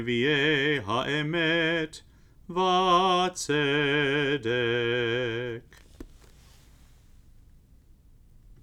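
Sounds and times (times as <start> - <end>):
Jewish blessing chanted: 0.0 - 5.6.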